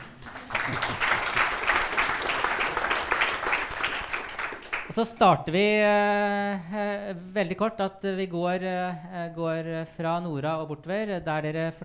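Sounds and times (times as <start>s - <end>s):
audience applause: 0.0s - 4.9s
speech: 0.7s - 1.4s, 5.0s - 11.8s.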